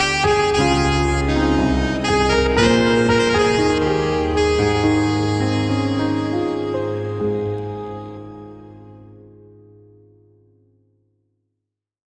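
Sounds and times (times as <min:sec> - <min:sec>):
alto sax solo: 0:00.0 - 0:09.5.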